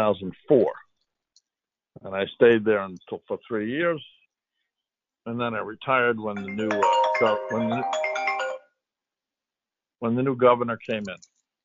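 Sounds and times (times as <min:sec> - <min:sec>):
speech: 0:00.1 - 0:00.8, 0:02.0 - 0:04.2, 0:05.2 - 0:08.1, 0:10.0 - 0:11.3
phone ringtone short electronic melody: 0:06.4 - 0:08.7.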